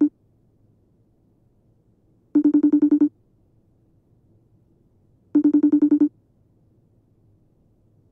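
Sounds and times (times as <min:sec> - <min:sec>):
FaceTime phone sounds: 0:02.4 - 0:03.1, 0:05.4 - 0:06.1.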